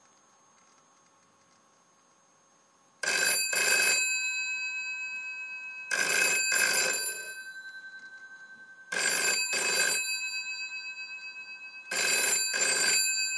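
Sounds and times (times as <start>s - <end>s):
old school phone: 3.0s - 13.3s.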